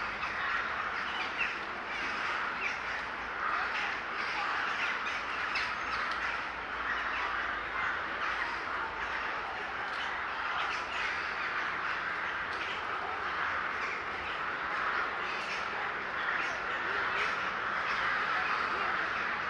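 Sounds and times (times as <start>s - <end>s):
large flock of birds calling in a city park in Łódź, Poland: 0.0s - 19.4s.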